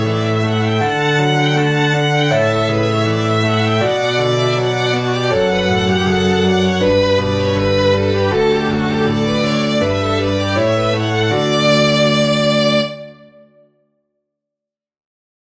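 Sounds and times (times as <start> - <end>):
two violins: 0.0 - 13.5
cello: 0.0 - 13.6
piano: 0.0 - 13.8.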